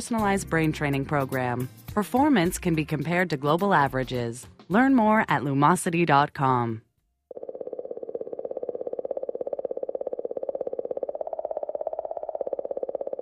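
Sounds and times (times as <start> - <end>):
speech: 0.0 - 6.8
mysterious clicking recorded from Comet 67P: 7.3 - 13.2.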